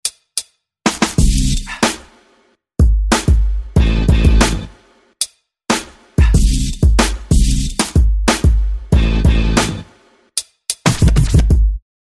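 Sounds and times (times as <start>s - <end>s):
groovy hip hop music: 0.9s - 2.2s, 2.8s - 4.9s, 5.7s - 11.8s.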